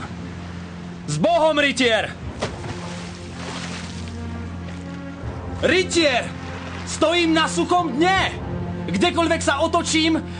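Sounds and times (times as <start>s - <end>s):
stormy sea waves: 0.0s - 7.7s
speech: 1.1s - 2.2s, 5.6s - 10.3s.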